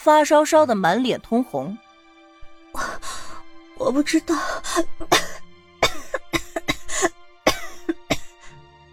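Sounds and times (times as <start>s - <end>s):
speech: 0.0s - 1.8s, 3.8s - 5.2s
violent harsh coughing: 4.9s - 8.6s.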